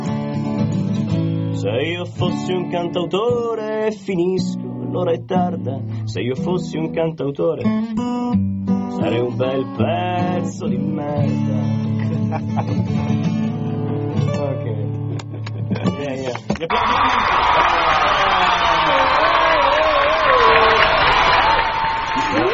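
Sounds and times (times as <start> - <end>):
music: 0.0 - 16.6
speech: 1.6 - 13.4, 16.2 - 17.7
laughter: 11.9 - 13.2, 15.1 - 22.5
applause from the control room: 16.2 - 22.5
cheering and excited voices: 16.6 - 22.5.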